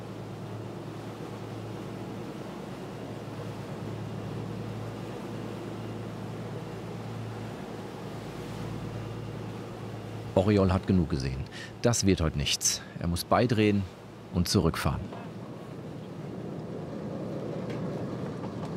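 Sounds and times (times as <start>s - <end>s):
sea waves: 0.0s - 18.7s
speech: 10.4s - 15.2s.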